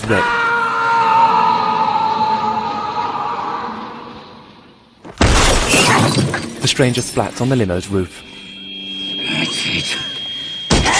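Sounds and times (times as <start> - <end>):
speech: 0.1 - 0.4, 6.6 - 8.4
wavering tonal wail: 0.2 - 4.7, 8.0 - 10.9
window glass shattering: 5.2 - 6.6.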